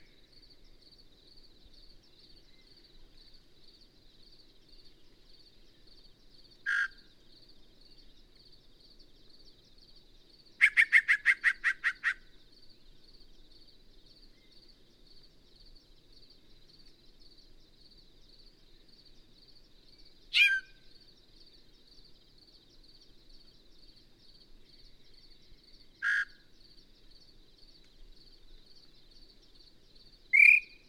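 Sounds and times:
Yellow-breasted Chat calling: 6.6 - 7.0, 10.6 - 12.3, 20.3 - 20.8, 26.0 - 26.4, 30.3 - 30.8.

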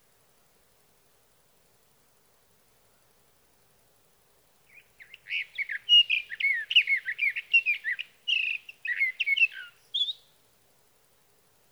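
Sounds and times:
sage thrasher warbling song: 4.7 - 10.3.

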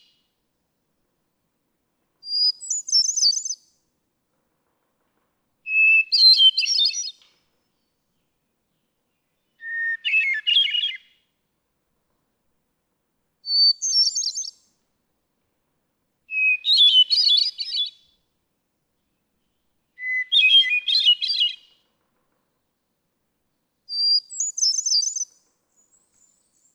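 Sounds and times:
hermit thrush singing: 2.3 - 3.6, 5.7 - 7.2, 8.8 - 11.1, 13.5 - 14.7, 16.3 - 18.1, 19.5 - 21.7, 23.9 - 26.7.

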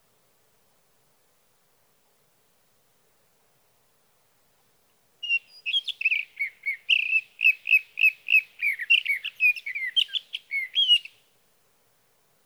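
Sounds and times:
sage thrasher song: 5.2 - 11.2.

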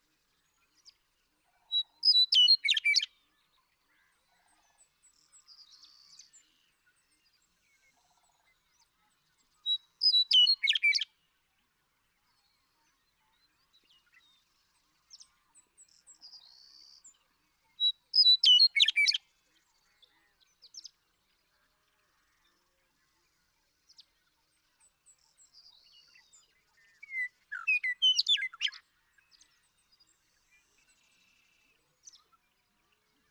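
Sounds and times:
western meadowlark singing: 2.0 - 3.1, 9.7 - 11.1, 17.8 - 19.2, 25.2 - 29.4.

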